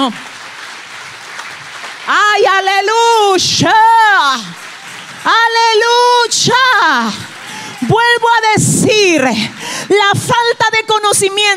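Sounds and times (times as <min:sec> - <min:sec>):
speech: 0:00.0 - 0:00.3, 0:02.1 - 0:04.6, 0:05.2 - 0:11.5
crowd applauding: 0:00.0 - 0:08.4.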